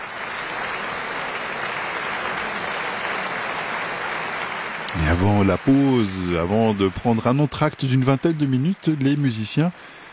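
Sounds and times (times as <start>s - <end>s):
concert audience applause in Basel: 0.0s - 10.1s
speech: 4.9s - 10.0s.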